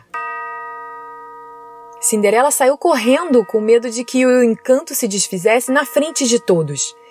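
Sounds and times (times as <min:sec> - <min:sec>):
clock chime striking midnight: 0:00.0 - 0:07.0
speech: 0:02.1 - 0:07.0.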